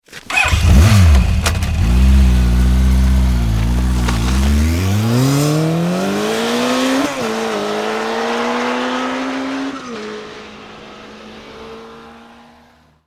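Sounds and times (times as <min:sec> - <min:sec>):
Honda 1100 motorbike starting and pulling away fast: 0:00.1 - 0:09.7.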